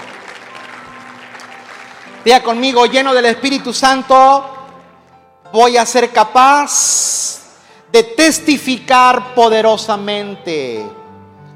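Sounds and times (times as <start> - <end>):
audience giving loud applause: 0.0 - 4.2
speech: 2.2 - 4.6, 5.5 - 7.2, 7.9 - 11.0.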